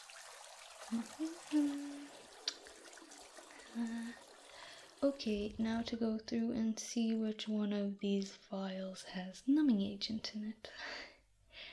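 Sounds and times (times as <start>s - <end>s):
lukewarm water poured into a basin: 0.0s - 6.0s
speech: 0.9s - 1.9s, 5.0s - 11.7s.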